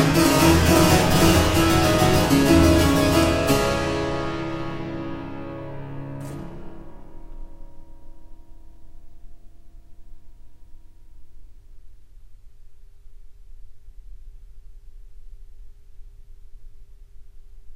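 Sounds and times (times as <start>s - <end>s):
classical prelude and fugue in D minor: 0.0s - 7.2s.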